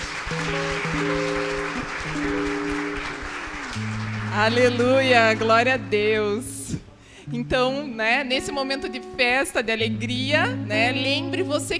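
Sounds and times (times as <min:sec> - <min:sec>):
audience applauding: 0:00.0 - 0:05.9
speech: 0:04.4 - 0:06.5, 0:07.3 - 0:11.7.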